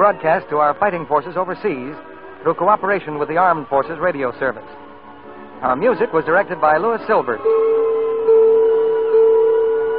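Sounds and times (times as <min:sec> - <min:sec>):
speech: 0:00.0 - 0:04.8, 0:05.6 - 0:08.0
three radio network chime bells: 0:05.6 - 0:09.9.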